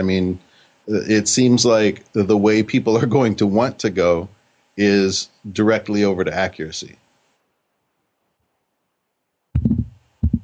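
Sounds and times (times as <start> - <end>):
speech: 0.0 - 7.0
head bumping a microphone: 9.6 - 10.4.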